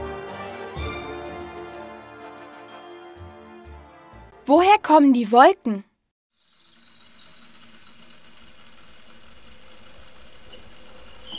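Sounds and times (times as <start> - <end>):
speech: 4.5 - 5.9
kettle whistling as water boils: 6.4 - 11.3.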